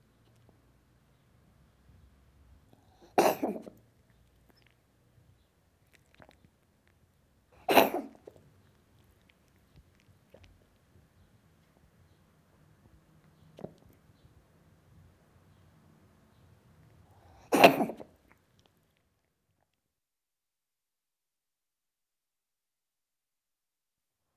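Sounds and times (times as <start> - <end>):
cat coughing: 3.0 - 3.8, 7.6 - 8.3, 17.4 - 18.1.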